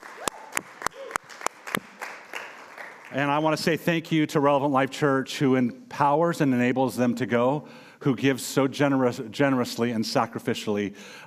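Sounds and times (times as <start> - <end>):
round of applause: 0.0 - 3.4
speech: 3.1 - 11.2.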